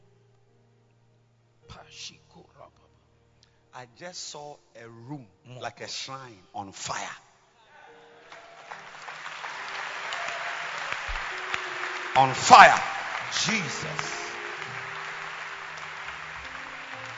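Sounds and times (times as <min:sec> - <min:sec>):
speech: 0:01.7 - 0:02.9, 0:03.7 - 0:07.3, 0:12.2 - 0:14.2
audience clapping: 0:08.2 - 0:17.1.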